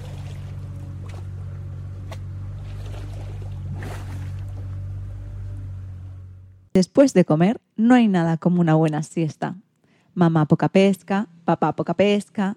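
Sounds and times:
water sloshing and splashing against the boat hull: 0:00.0 - 0:05.2
small boat's engines droning as the boat stops: 0:00.0 - 0:12.5
speech: 0:06.8 - 0:09.6, 0:10.2 - 0:12.5.

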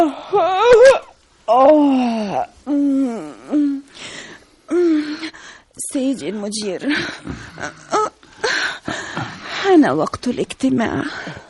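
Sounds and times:
speech: 0:00.0 - 0:02.8, 0:06.0 - 0:08.0, 0:09.7 - 0:11.4
woman moaning and whimpering from under a bed: 0:00.0 - 0:03.9, 0:04.7 - 0:05.4, 0:06.2 - 0:09.7.

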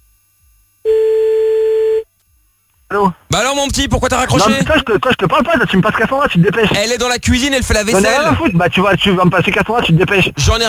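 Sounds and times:
telephone ring tone: 0:00.9 - 0:02.1
speech: 0:02.9 - 0:10.6.

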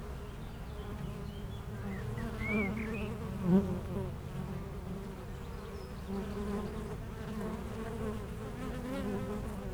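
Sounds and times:
honey bees humming: 0:00.0 - 0:09.6.

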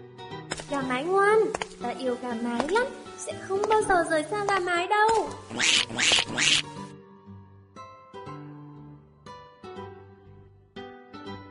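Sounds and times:
speech: 0:00.7 - 0:06.8
duckling quacking: 0:05.4 - 0:06.7.

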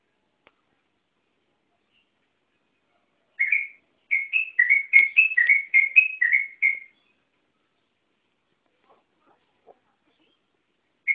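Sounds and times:
Yellow-vented Bulbul song of liquid whistled notes: 0:03.4 - 0:07.2.

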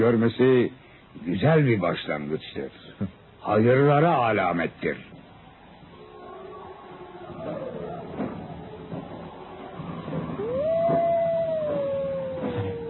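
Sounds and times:
speech: 0:00.0 - 0:05.2
wolves howling: 0:05.8 - 0:12.8.

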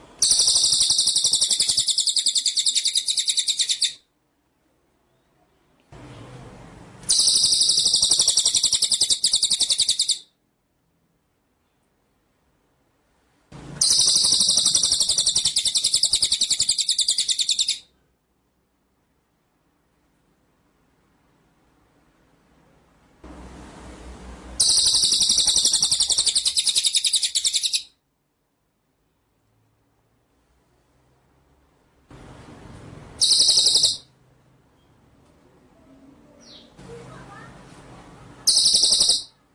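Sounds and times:
white-rumped shama song trill: 0:00.2 - 0:04.1, 0:07.0 - 0:10.3, 0:13.8 - 0:17.9, 0:24.6 - 0:28.0, 0:33.2 - 0:34.1, 0:38.4 - 0:39.4.

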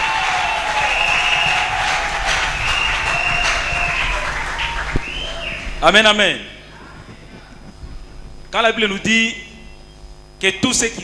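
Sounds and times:
audience applauding and cheering: 0:00.0 - 0:05.8
speech: 0:05.8 - 0:06.5, 0:08.5 - 0:09.4, 0:10.4 - 0:11.0.

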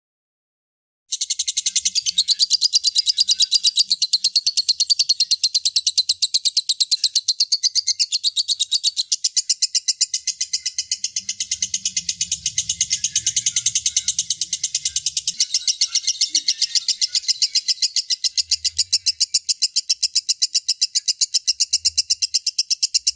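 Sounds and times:
lovebird singing a long sustained trill: 0:01.1 - 0:23.1.

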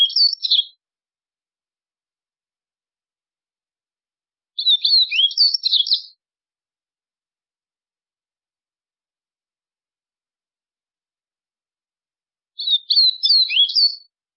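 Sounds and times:
White-throated seedeater twittering: 0:00.0 - 0:00.8, 0:04.6 - 0:06.2, 0:12.6 - 0:14.1.

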